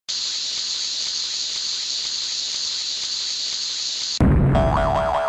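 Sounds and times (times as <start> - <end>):
explosion: 4.2 - 5.2.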